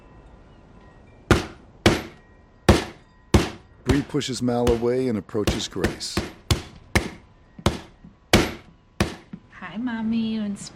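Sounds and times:
meat mallet pounding chicken breasts: 0:01.3 - 0:09.3
speech: 0:04.0 - 0:06.4, 0:09.9 - 0:10.7.

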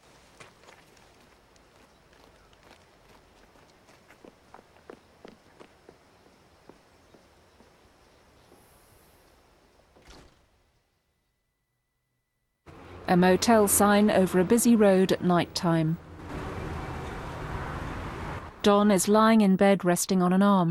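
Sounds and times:
woman's jogging footsteps: 0:00.0 - 0:08.7
speech: 0:13.1 - 0:16.0, 0:18.6 - 0:20.6.

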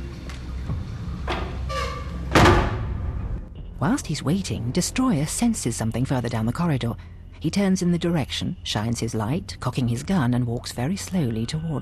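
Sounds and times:
low rumbling background: 0:00.0 - 0:10.4
cubicle door creaking, scraping and banging shut: 0:01.2 - 0:03.4
speech: 0:03.8 - 0:11.8.

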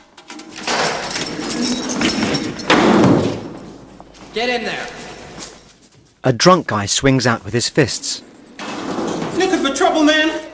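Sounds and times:
heavy jail cell door grinding and rattling open: 0:00.0 - 0:03.9, 0:07.5 - 0:10.5
speech: 0:01.6 - 0:03.4, 0:04.4 - 0:05.0, 0:06.2 - 0:08.3, 0:09.8 - 0:10.4.

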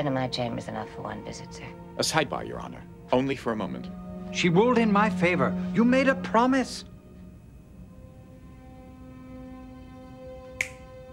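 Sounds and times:
speech: 0:00.0 - 0:06.9
finger snap: 0:10.6 - 0:11.0.

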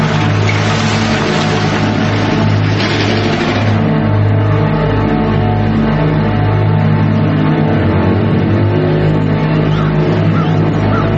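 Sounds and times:
beat-up blue pickup truck engine rumble pulling up: 0:00.0 - 0:11.1.

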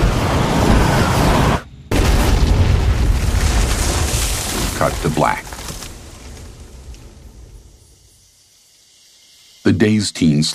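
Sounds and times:
crashing spaceship explosion: 0:00.0 - 0:07.6
speech: 0:04.8 - 0:05.5, 0:09.7 - 0:10.5.

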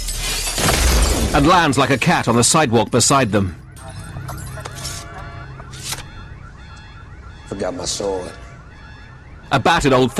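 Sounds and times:
glass window shattering: 0:00.0 - 0:02.4
speech: 0:01.3 - 0:03.6, 0:07.6 - 0:08.4, 0:09.5 - 0:10.1.

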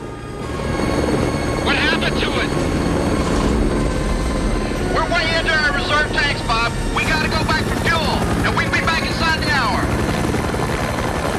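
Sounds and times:
helicopter rotor and engine drone during a search: 0:00.0 - 0:11.3
voices: 0:01.6 - 0:02.7, 0:04.8 - 0:10.1.

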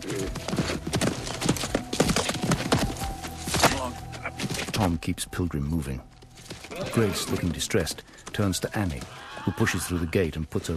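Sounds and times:
horse hooves clopping while hobbling three-legged round a corral: 0:00.0 - 0:10.7
speech: 0:04.8 - 0:06.1, 0:06.8 - 0:10.7.

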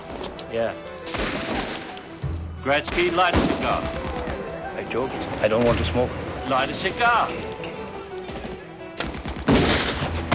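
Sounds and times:
speech: 0:00.5 - 0:01.4, 0:02.6 - 0:04.0, 0:04.8 - 0:07.5
gunfire in a shootout: 0:01.1 - 0:02.0, 0:02.8 - 0:04.5, 0:08.4 - 0:10.3.

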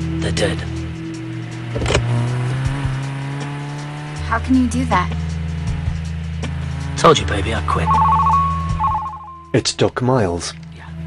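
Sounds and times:
black car's engine driving off: 0:00.0 - 0:09.5
speech: 0:00.2 - 0:00.8, 0:01.7 - 0:02.0, 0:04.3 - 0:05.2, 0:07.0 - 0:08.3, 0:09.5 - 0:10.6.

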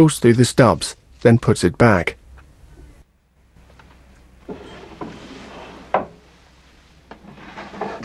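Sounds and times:
speech: 0:00.0 - 0:02.2
desk drawer in an office being pulled open: 0:04.4 - 0:08.0.

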